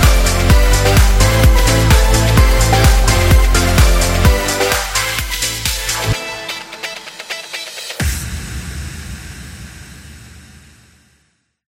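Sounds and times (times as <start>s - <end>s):
upbeat corporate pop music: 0.0s - 8.4s.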